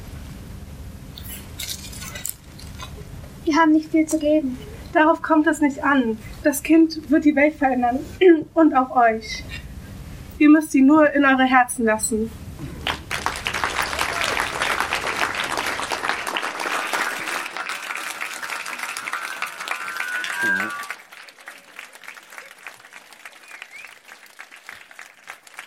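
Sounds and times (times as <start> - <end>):
speech: 3.5 - 9.6, 10.4 - 12.4
audience applause: 12.7 - 25.6.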